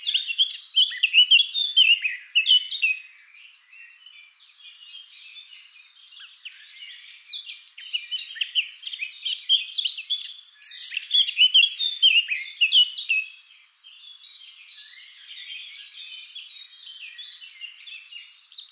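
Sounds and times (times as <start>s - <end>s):
Eurasian blackcap song: 0.0s - 18.7s.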